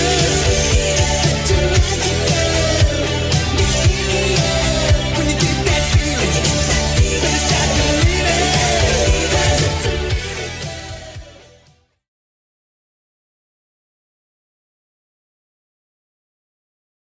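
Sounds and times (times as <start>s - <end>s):
1980s style remix music at 115 bpm: 0.0s - 11.8s.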